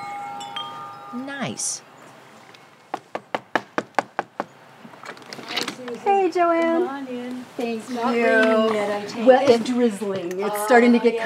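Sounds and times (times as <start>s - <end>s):
speech: 1.1s - 1.9s, 5.8s - 11.2s
knocking on a front door: 2.9s - 4.5s.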